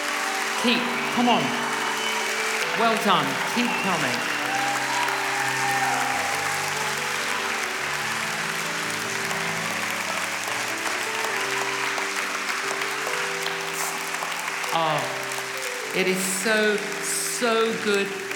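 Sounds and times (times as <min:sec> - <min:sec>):
audience applause: 0:00.0 - 0:18.3
speech: 0:00.6 - 0:01.7, 0:02.8 - 0:04.4, 0:14.8 - 0:15.2, 0:15.9 - 0:18.3.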